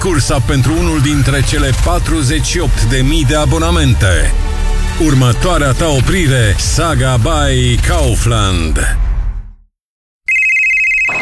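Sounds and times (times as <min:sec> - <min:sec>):
speech: 0:00.0 - 0:09.0
low rumble: 0:00.0 - 0:09.6
telephone ringing: 0:10.3 - 0:11.1.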